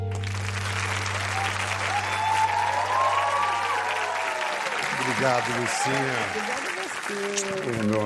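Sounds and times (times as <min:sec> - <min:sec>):
audience applause: 0:00.1 - 0:08.0
speech: 0:05.9 - 0:08.0.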